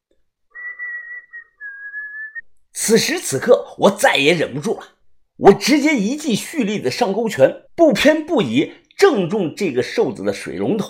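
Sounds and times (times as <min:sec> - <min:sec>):
mouth whistling: 0:00.5 - 0:02.4
speech: 0:02.8 - 0:10.8.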